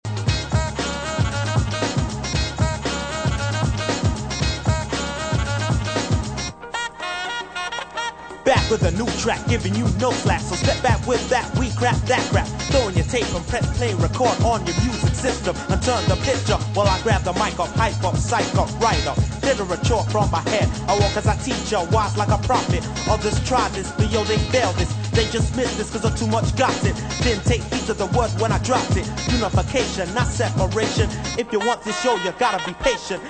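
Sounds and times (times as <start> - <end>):
intro rap refrain: 0.1 - 6.5, 8.5 - 33.2.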